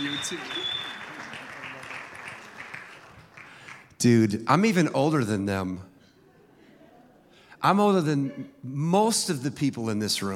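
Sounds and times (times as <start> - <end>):
audience applause welcoming a speaker to the stage: 0.0 - 3.9
speech: 0.1 - 0.8, 4.0 - 5.9, 7.6 - 10.3.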